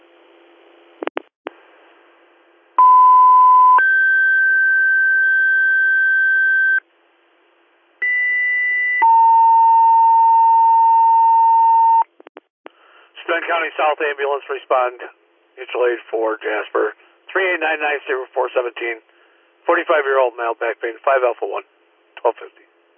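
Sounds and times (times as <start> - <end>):
dispatch paging tones for IAR page: 2.8 - 6.8, 8.0 - 12.1
speech: 13.4 - 19.1, 19.7 - 22.6.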